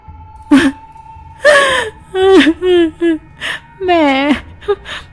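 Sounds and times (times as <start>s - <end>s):
child crying behind a wooden board: 0.5s - 0.8s, 1.4s - 5.0s.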